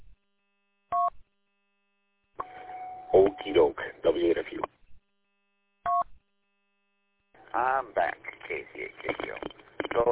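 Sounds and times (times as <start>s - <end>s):
telephone two-tone beep: 2.4s - 3.5s
speech: 3.2s - 4.7s, 7.6s - 10.1s.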